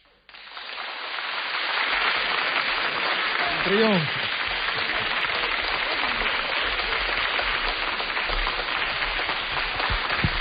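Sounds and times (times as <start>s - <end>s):
big crowd applauding: 0.0s - 10.3s
speech: 3.6s - 4.3s.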